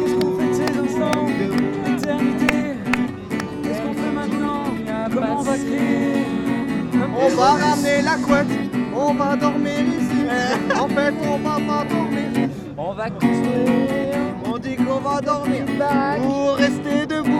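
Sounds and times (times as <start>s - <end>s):
crowd voices at a Nuit Debout gathering at Place du Bouffay in Nantes: 0.0s - 17.3s
laughter: 10.0s - 11.9s.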